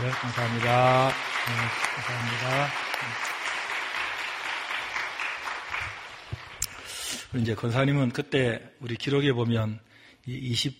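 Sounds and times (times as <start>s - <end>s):
crowd applause welcoming family: 0.0s - 7.0s
speech: 0.1s - 3.5s, 7.3s - 10.7s.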